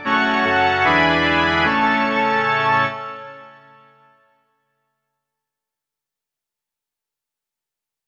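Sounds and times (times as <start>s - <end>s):
organ: 0.0s - 4.0s.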